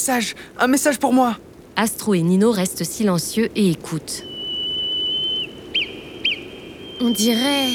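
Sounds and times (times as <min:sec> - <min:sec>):
speech: 0:00.0 - 0:04.3, 0:07.0 - 0:07.7
whistled Morse code signal: 0:04.2 - 0:07.7.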